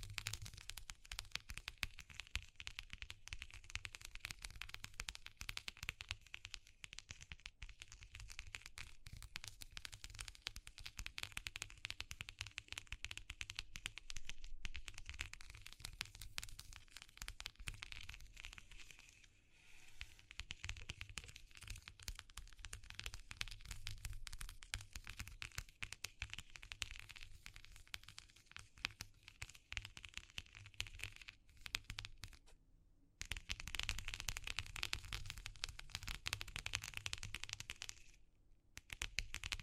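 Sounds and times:
crackling and scratching textures in an ASMR session: 0.0s - 32.6s, 33.2s - 38.2s, 38.8s - 39.6s.

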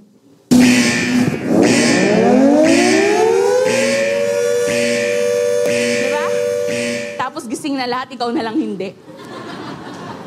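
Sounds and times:
loud siren-like alarm: 0.5s - 7.3s
pulsing beep: 0.5s - 7.3s
speech: 8.0s - 9.1s
laughter: 8.4s - 10.2s.

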